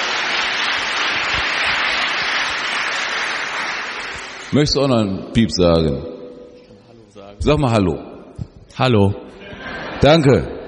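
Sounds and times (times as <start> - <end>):
crowd applause: 0.0 - 4.6
speech: 4.5 - 6.1, 7.4 - 8.1, 8.8 - 9.2, 10.0 - 10.6
laughter: 9.3 - 10.6.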